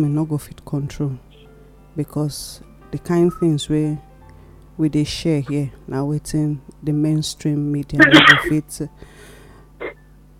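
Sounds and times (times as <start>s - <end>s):
speech: 0.0s - 1.3s, 2.0s - 4.1s, 4.8s - 9.3s
sneeze: 8.0s - 8.6s.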